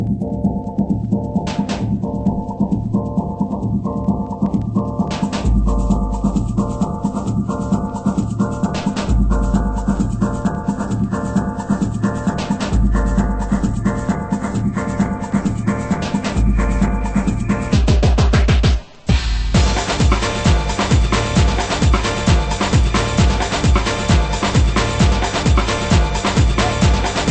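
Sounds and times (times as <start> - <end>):
drum: 0.0 - 27.3.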